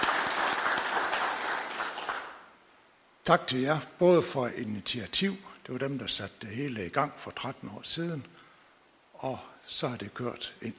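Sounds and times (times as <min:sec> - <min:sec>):
audience applause: 0:00.0 - 0:02.5
speech: 0:03.2 - 0:08.4, 0:09.2 - 0:10.7.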